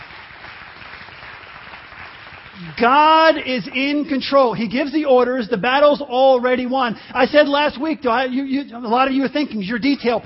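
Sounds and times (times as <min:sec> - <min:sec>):
crowd applauding: 0:00.0 - 0:03.4
speech: 0:02.6 - 0:10.2.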